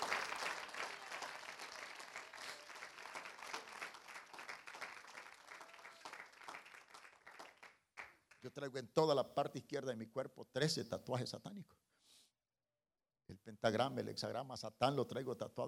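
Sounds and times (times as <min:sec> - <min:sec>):
audience applause: 0:00.0 - 0:08.4
speech: 0:08.4 - 0:11.8, 0:13.6 - 0:15.6.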